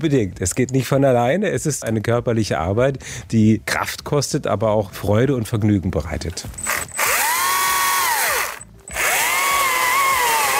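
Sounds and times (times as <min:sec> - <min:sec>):
speech: 0:00.0 - 0:06.9
power saw cutting pieces from a tree trunk: 0:06.6 - 0:10.5.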